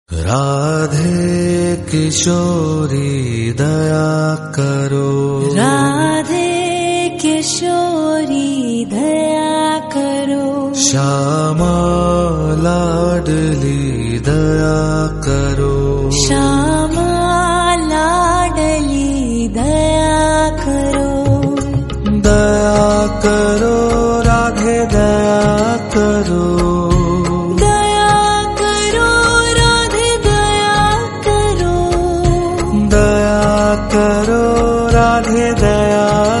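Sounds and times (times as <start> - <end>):
instrumental music: 0.6 - 36.3.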